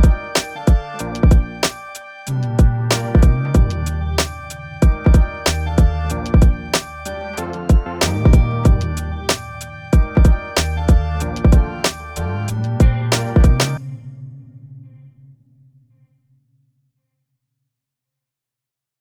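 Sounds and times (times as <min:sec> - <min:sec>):
music in E flat minor: 0:00.0 - 0:15.1.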